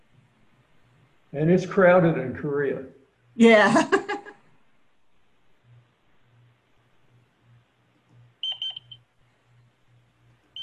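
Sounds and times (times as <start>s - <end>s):
speech: 1.3s - 4.2s
Seoul Metro high-pitched electronic signal: 8.4s - 9.0s.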